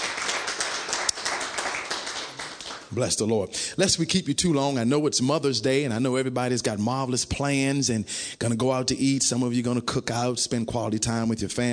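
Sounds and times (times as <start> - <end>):
church congregation clapping in praise: 0.0 - 3.2
speech: 2.9 - 11.7.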